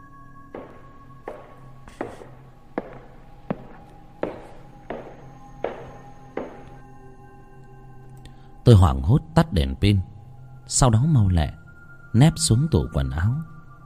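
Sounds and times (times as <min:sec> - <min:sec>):
slow even heavy footsteps approaching at night: 0:00.5 - 0:06.9
speech: 0:08.7 - 0:10.1, 0:10.7 - 0:13.6.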